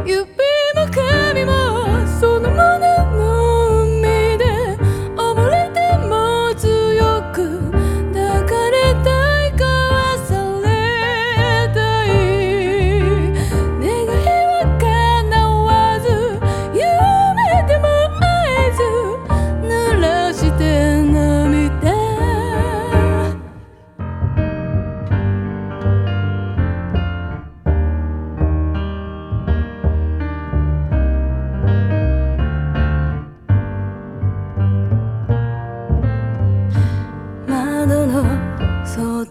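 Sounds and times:
piano: 0:00.0 - 0:39.3
voice: 0:00.1 - 0:23.6, 0:37.5 - 0:39.3.

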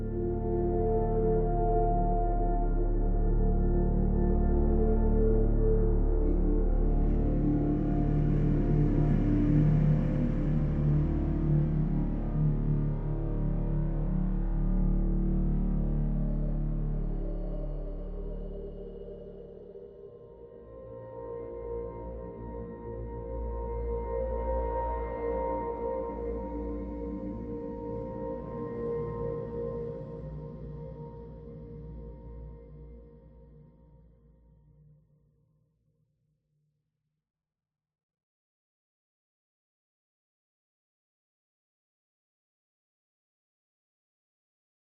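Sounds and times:
ambient music: 0:00.0 - 0:33.6.

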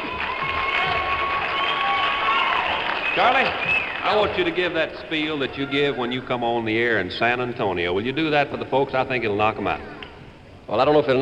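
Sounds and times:
audience applauding and cheering to welcome a DJ at a live show: 0:00.0 - 0:07.0
speech: 0:03.2 - 0:09.9, 0:10.7 - 0:11.2.

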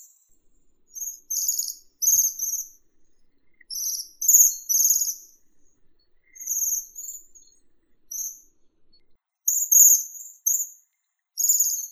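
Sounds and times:
Bohemian waxwing Bombycilla garrulus calling: 0:00.3 - 0:09.2.

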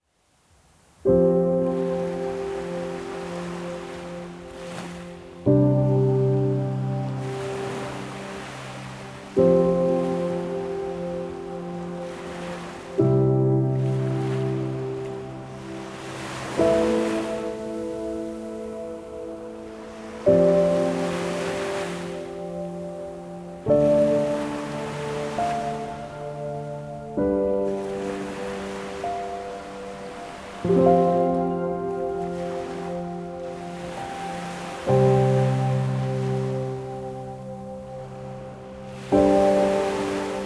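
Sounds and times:
ocean waves: 0:00.4 - 0:40.4
healing piano: 0:01.0 - 0:40.4.

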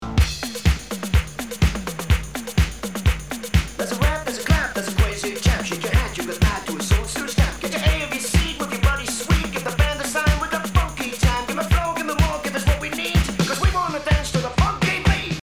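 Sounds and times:
rap clap: 0:00.2 - 0:15.4.

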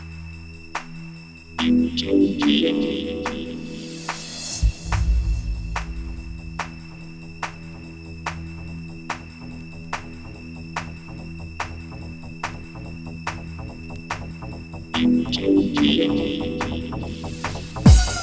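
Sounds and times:
techno dub music: 0:01.6 - 0:07.2, 0:14.9 - 0:18.2.

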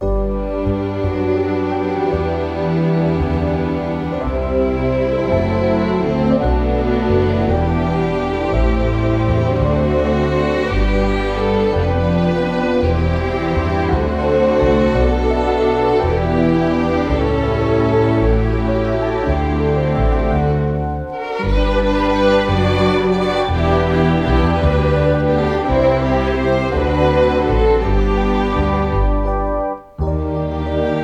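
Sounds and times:
waltz played by strings: 0:00.0 - 0:31.0.

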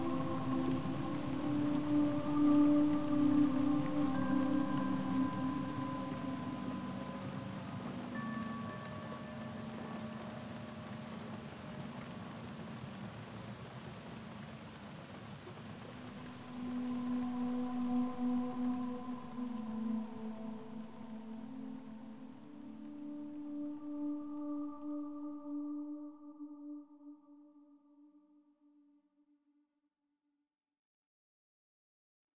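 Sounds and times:
tropical rainfall: 0:00.0 - 0:25.5.

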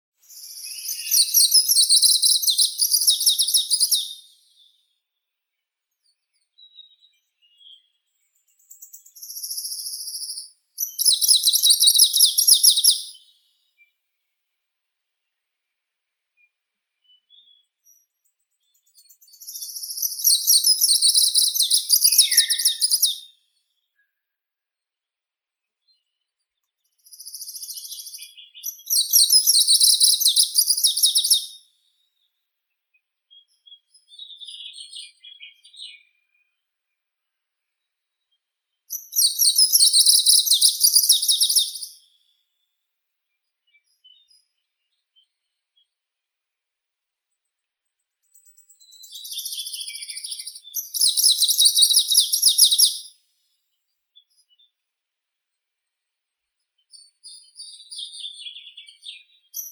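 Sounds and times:
greenish warbler Phylloscopus trochiloides singing: 0:00.2 - 0:04.4, 0:08.6 - 0:13.3, 0:18.8 - 0:23.3, 0:27.1 - 0:31.6, 0:38.9 - 0:42.0, 0:48.4 - 0:53.1, 0:57.0 - 0:59.7.

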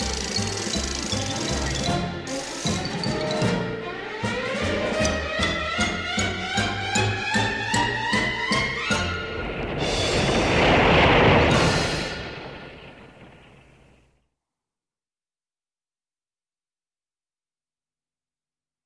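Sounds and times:
string orchestra: 0:00.0 - 0:12.3.

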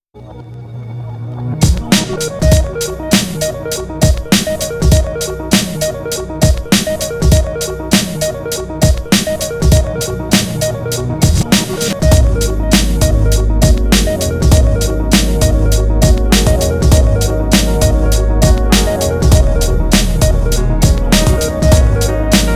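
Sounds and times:
piano interlude: 0:00.3 - 0:22.5.

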